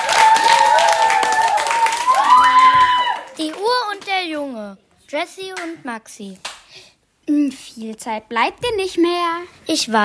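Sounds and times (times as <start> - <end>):
audience applause: 0.0 - 3.6
speech: 4.7 - 10.0.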